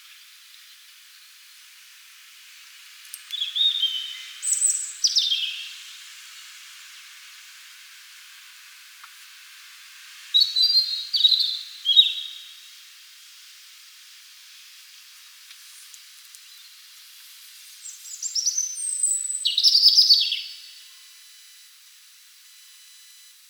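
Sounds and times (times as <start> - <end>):
faint hiss: 0.0 - 23.4
European robin singing: 3.2 - 5.9, 10.3 - 12.6, 17.8 - 20.7.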